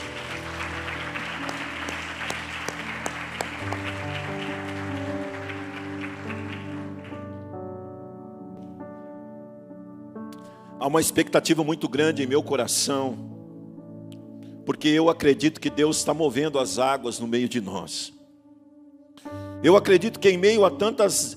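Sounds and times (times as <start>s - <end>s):
audience applause: 0.0s - 7.3s
speech: 10.8s - 13.4s, 14.7s - 18.2s, 19.2s - 21.3s.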